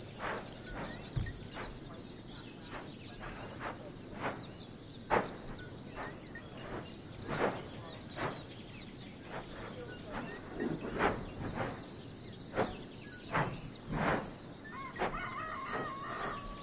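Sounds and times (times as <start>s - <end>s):
shrill insect drone: 0.0s - 16.6s
dull knocks: 0.2s - 1.8s
wobbling tonal bird call: 14.7s - 16.6s.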